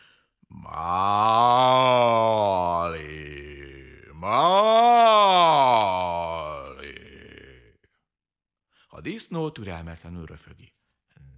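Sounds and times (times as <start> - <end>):
person imitating cow mooing: 0.5 - 7.7
speech: 9.4 - 10.8.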